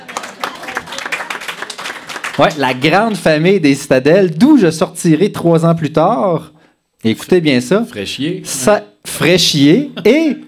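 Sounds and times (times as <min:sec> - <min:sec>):
audience applause: 0:00.0 - 0:03.1
speech: 0:02.4 - 0:10.4.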